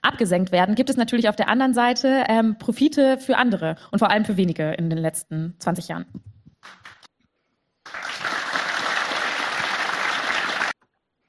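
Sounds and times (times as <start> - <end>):
speech: 0.1 - 6.9
applause: 6.6 - 7.1, 7.8 - 10.8.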